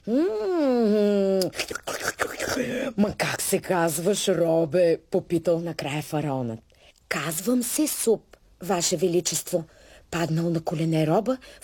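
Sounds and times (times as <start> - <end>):
speech: 0.0 - 0.5, 2.6 - 11.6
noisy slurping: 1.4 - 2.7.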